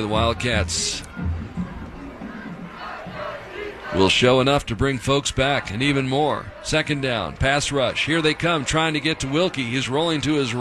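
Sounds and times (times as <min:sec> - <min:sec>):
speech: 0:00.0 - 0:01.3, 0:03.9 - 0:10.5
Wildcat fans cheering in a stadium at a college football home opener: 0:00.0 - 0:10.5.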